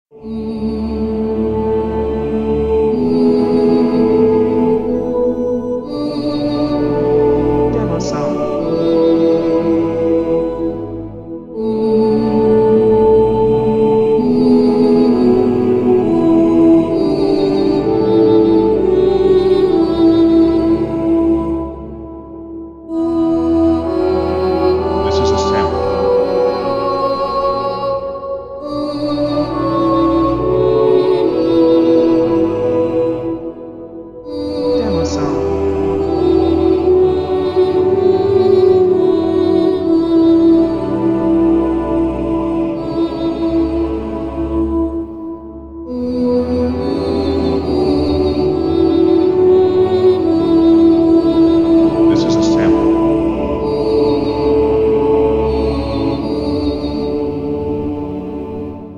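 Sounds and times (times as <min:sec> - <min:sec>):
heavenly choir singing: 0:00.1 - 0:58.9.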